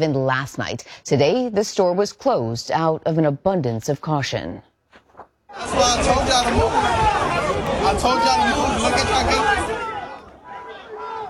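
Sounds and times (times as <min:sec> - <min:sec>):
speech: 0:00.0 - 0:04.7, 0:05.5 - 0:09.7
chaotic crowd chatter outside a store: 0:05.5 - 0:11.2.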